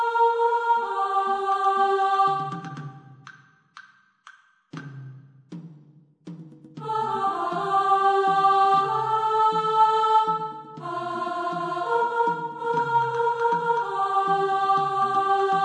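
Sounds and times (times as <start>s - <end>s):
soprano: 0.0s - 2.7s, 6.8s - 15.6s.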